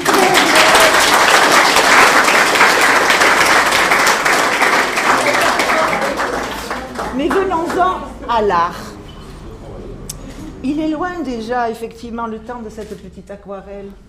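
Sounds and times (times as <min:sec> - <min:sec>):
audience applauding: 0:00.0 - 0:08.2
speech: 0:08.3 - 0:08.8, 0:10.6 - 0:14.0.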